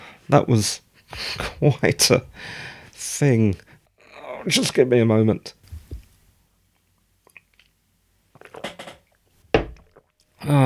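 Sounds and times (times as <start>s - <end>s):
speech: 0.3s - 3.7s, 4.4s - 5.6s, 10.5s - 10.6s
chair creaking: 8.4s - 9.1s.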